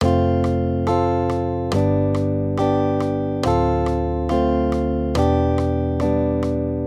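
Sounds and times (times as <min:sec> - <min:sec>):
major triads: 0:00.0 - 0:06.8.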